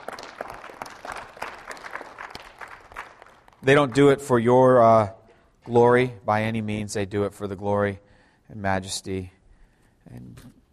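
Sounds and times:
audience clapping: 0.0 - 4.2
speech: 3.6 - 9.4, 10.1 - 10.6.

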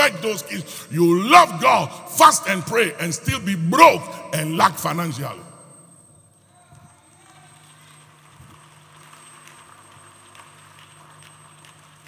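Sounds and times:
speech: 0.1 - 5.5
crowd clapping: 7.5 - 12.0.

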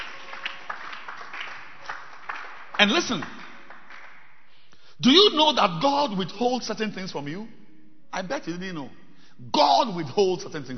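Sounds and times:
audience clapping hands: 0.0 - 4.5
speech: 2.8 - 3.4, 5.0 - 10.7.

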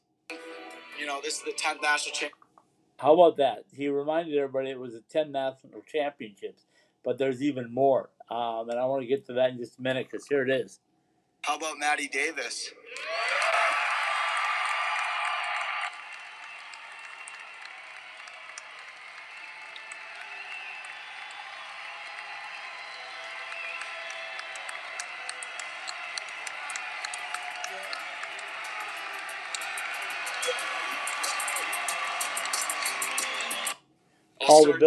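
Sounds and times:
speech: 1.0 - 2.4, 3.0 - 10.8, 11.4 - 13.3, 34.6 - 34.8
faint cheers: 12.8 - 33.8
sustained applause from a large standing audience: 12.9 - 33.8.

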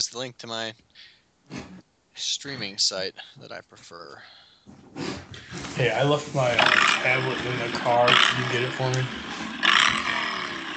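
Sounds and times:
speech: 0.1 - 9.3
motorcycle or ATV engine passing: 5.8 - 10.7.

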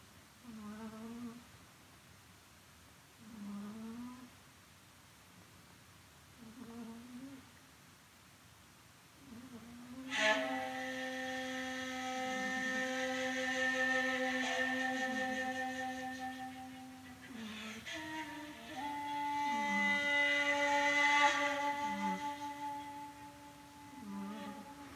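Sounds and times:
cat snoring: 0.5 - 1.4, 3.2 - 4.3, 6.4 - 7.4, 19.5 - 19.9, 21.9 - 22.2, 24.0 - 24.8
shakuhachi playing long held notes: 10.1 - 24.9.

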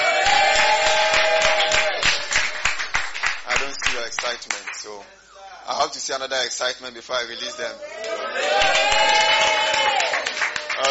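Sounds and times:
crowd shouting: 0.0 - 2.7, 7.8 - 10.2
crowd clapping: 0.0 - 5.0, 8.0 - 10.8
speech: 4.3 - 9.2.

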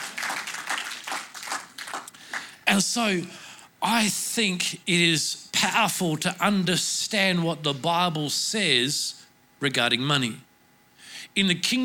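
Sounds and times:
group hand clapping: 0.0 - 2.6
speech: 2.7 - 10.5, 11.4 - 11.8.

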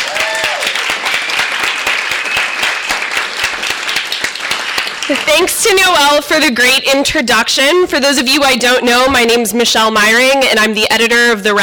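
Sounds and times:
audience clapping: 0.0 - 6.5
speech: 5.1 - 11.6.

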